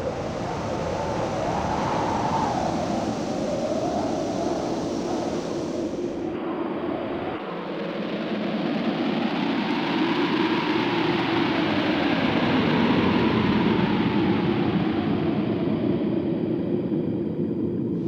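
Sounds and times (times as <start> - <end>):
wind: 0.0 - 18.0.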